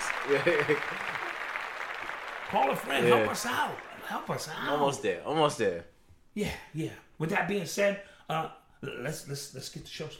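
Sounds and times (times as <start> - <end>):
people clapping: 0.0 - 5.1
speech: 0.2 - 1.2, 2.5 - 10.1
laughter: 0.2 - 1.6.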